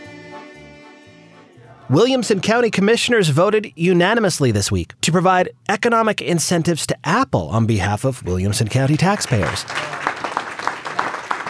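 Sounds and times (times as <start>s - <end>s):
speech: 1.9s - 10.0s
applause at a packed commissioners' court meeting after a vote: 8.7s - 11.4s.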